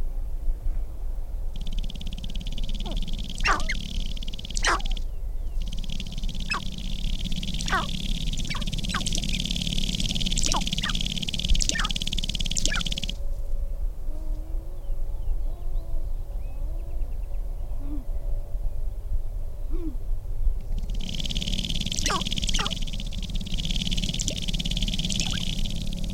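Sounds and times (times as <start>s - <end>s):
quiet rumble: 0.2s - 26.1s
low whistled calls: 1.6s - 13.2s, 20.7s - 26.1s
sharp-tailed grouse display rattling buzz: 1.6s - 13.3s, 20.6s - 26.1s.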